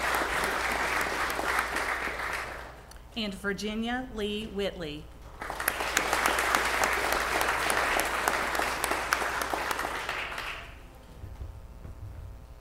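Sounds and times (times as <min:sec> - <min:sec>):
crowd applauding for graduates: 0:00.0 - 0:02.8, 0:05.4 - 0:11.0
speech: 0:03.2 - 0:05.5
low hum: 0:10.6 - 0:12.5.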